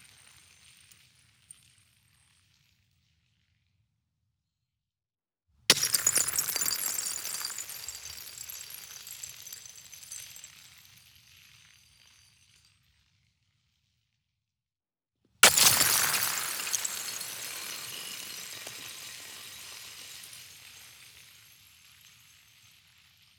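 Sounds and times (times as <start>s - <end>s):
ice dropping and shattering outdoors: 5.7s - 10.4s, 15.4s - 21.2s
ice sliding: 15.4s - 19.6s.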